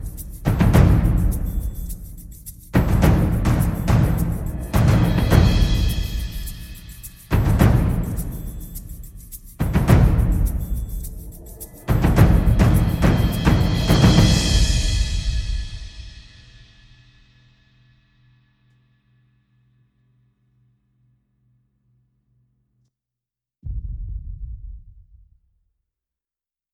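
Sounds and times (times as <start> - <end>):
percussion: 0.0 - 18.5, 23.6 - 25.7.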